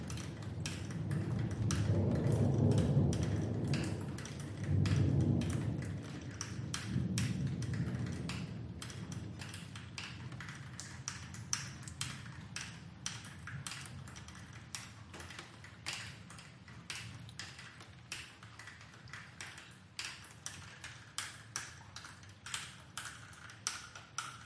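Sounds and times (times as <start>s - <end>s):
distant thunder rumble: 0.0s - 10.8s
rain dripping: 0.0s - 24.4s.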